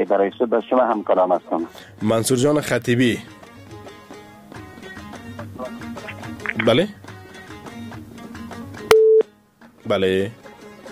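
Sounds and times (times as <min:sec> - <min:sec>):
speech: 0:00.0 - 0:03.4, 0:06.6 - 0:07.0, 0:09.9 - 0:10.4
phone click as call is cut off: 0:06.1 - 0:06.8
busy telephone tone on a dropped phone-in call: 0:08.9 - 0:09.3.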